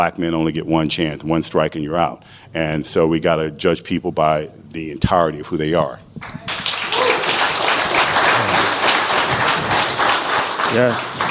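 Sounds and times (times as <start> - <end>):
speech: 0.0 - 6.7, 10.7 - 11.2
crowd applauding: 6.2 - 11.2.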